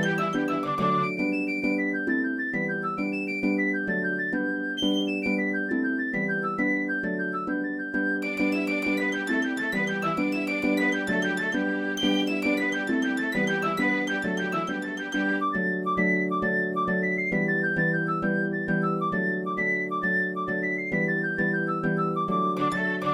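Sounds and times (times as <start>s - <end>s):
strings: 0.0s - 5.8s, 8.2s - 15.9s, 22.6s - 23.1s
flute: 0.0s - 23.1s
harp: 0.0s - 23.1s.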